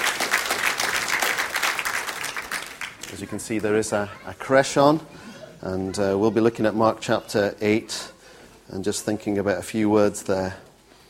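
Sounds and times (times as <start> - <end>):
church congregation applauding worship band: 0.0 - 3.9
speech: 3.1 - 8.1, 8.7 - 10.7.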